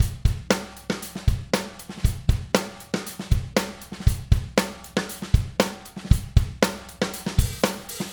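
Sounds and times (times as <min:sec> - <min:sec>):
drum loop: 0:00.0 - 0:08.1.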